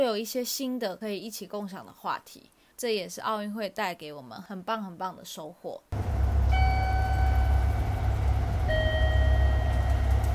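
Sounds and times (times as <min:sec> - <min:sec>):
speech: 0:00.0 - 0:06.0
guide chime for visually impaired people in Japan: 0:06.5 - 0:10.3.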